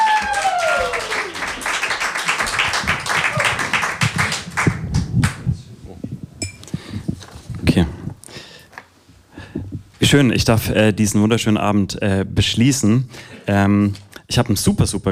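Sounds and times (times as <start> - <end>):
crowd applause: 0.0 - 5.4
speech: 10.1 - 15.0.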